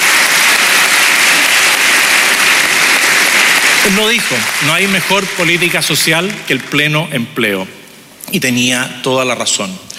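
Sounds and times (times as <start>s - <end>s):
audience applause: 0.0s - 7.0s
speech: 3.8s - 9.9s.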